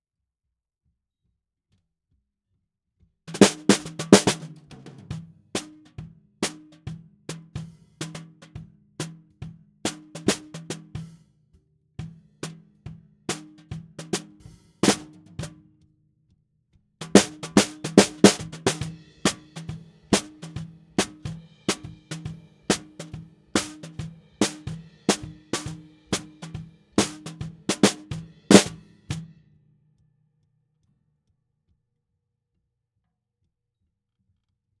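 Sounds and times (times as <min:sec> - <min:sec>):
snare drum: 0:03.3 - 0:05.8, 0:09.9 - 0:10.9, 0:13.3 - 0:15.5, 0:17.1 - 0:29.2.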